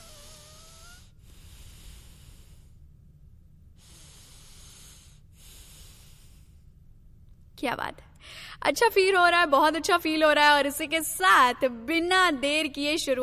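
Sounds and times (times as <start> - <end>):
deep breathing exercise: 0.0 - 7.2, 8.2 - 8.6
speech: 7.6 - 13.2.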